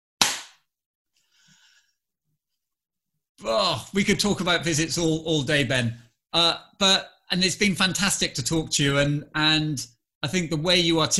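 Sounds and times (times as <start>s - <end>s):
single hand clap for sync: 0.2s - 0.6s
speech: 3.4s - 11.1s.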